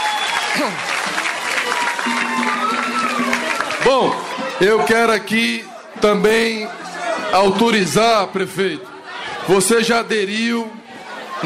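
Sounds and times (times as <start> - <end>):
crowd applause: 0.0 - 4.6
speech: 0.5 - 3.0, 3.9 - 8.9, 9.5 - 10.8.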